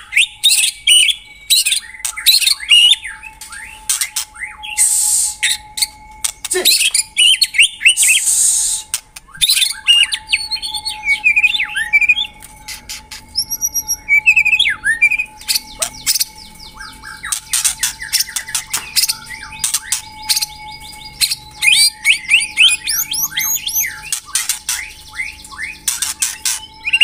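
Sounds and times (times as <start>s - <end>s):
White-rumped shama song: 0.0s - 27.0s.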